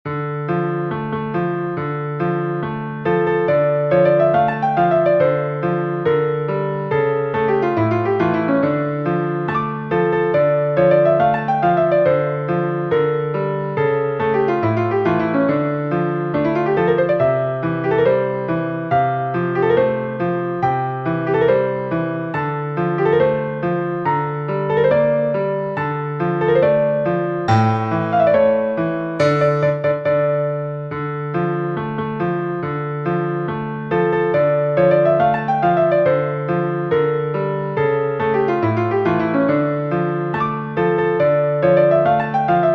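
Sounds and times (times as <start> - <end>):
piano: 0.0 - 42.7.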